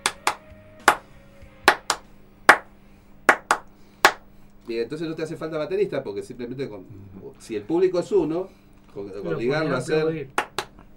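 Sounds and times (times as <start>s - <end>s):
sharp hand claps: 0.0s - 2.7s, 3.3s - 4.3s, 10.3s - 10.9s
speech: 4.7s - 10.4s.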